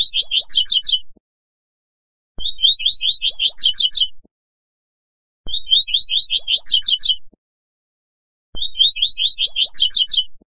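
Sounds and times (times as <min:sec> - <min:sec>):
Double-collared seedeater singing twittering phrase: 0:00.0 - 0:01.1, 0:02.4 - 0:04.2, 0:05.5 - 0:07.3, 0:08.6 - 0:10.4.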